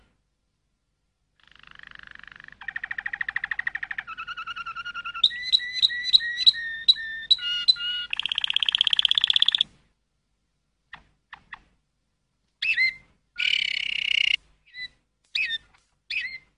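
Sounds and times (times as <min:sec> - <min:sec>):
canary running through varied rolls: 0:01.4 - 0:09.7, 0:12.6 - 0:16.5.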